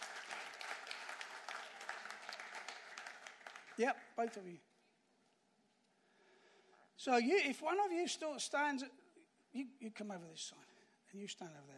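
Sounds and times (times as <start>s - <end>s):
audience applause: 0.0s - 4.4s
speech: 3.8s - 4.7s, 7.0s - 11.7s.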